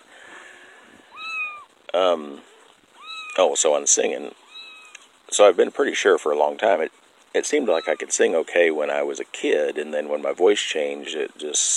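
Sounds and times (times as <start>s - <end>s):
soft noise: 0.0s - 11.7s
nursing kittens meowing: 1.0s - 1.8s, 2.4s - 3.6s, 4.3s - 5.1s, 7.4s - 8.4s
speech: 2.0s - 2.5s, 3.4s - 4.4s, 5.4s - 11.7s.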